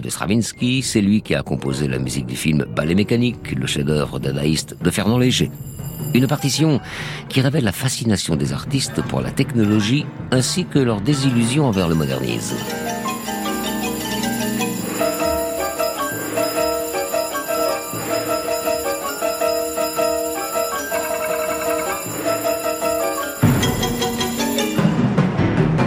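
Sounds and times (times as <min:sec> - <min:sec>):
speech: 0:00.0 - 0:13.0
ringing bells: 0:04.7 - 0:07.0, 0:11.6 - 0:25.0
xylophones: 0:04.8 - 0:07.2, 0:11.3 - 0:25.0
player pianos: 0:11.4 - 0:25.0.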